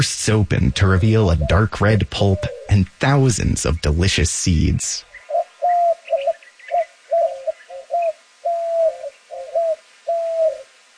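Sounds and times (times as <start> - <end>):
speech: 0.0 - 5.1
white-winged dove cooing: 0.6 - 2.9, 5.1 - 10.8.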